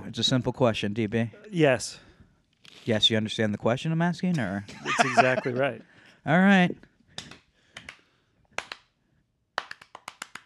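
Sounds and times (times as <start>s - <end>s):
speech: 0.1s - 2.1s, 2.7s - 7.3s
laughter: 4.4s - 5.8s
person clapping hands: 7.2s - 9.0s, 9.6s - 10.4s.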